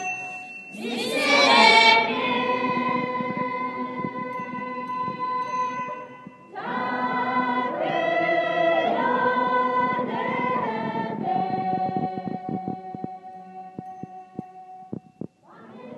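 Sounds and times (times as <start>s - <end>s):
crowd singing a soccer song: 0.8s - 5.4s, 6.5s - 13.1s, 15.5s - 15.9s.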